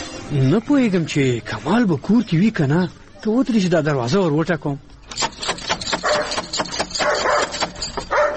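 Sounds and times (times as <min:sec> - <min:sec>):
speech: 0:00.4 - 0:04.9
dog barking at a house: 0:06.0 - 0:08.3.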